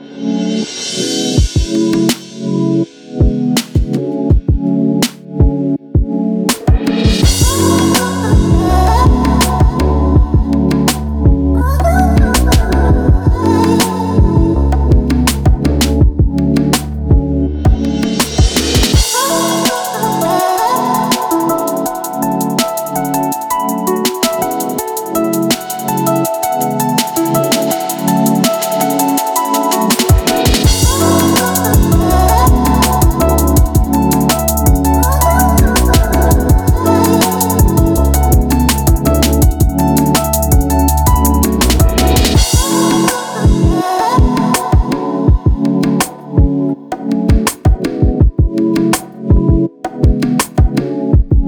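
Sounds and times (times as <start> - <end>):
soulful R&B jam: 0.2 - 51.4.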